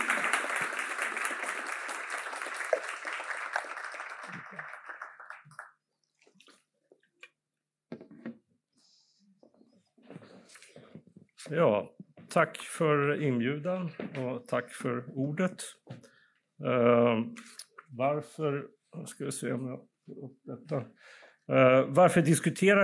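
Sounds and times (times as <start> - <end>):
audience applause: 0.0 - 5.8
quiet shuffling: 8.0 - 12.3
speech: 11.5 - 15.8, 16.6 - 22.8.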